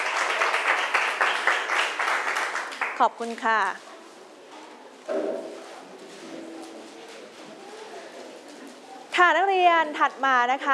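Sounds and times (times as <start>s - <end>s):
classroom applause: 0.0s - 3.0s
speech: 3.0s - 3.9s, 5.1s - 5.5s, 9.2s - 10.7s.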